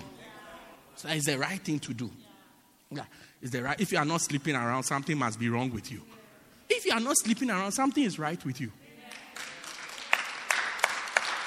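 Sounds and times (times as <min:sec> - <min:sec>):
speech: 0:01.0 - 0:02.2, 0:02.9 - 0:08.8
crowd clapping: 0:09.0 - 0:11.4.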